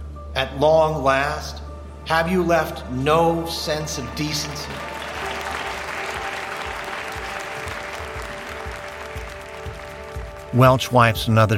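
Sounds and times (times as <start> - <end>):
speech: 0.4 - 5.0, 10.6 - 11.5
audience applause in a hearing room: 3.8 - 10.8.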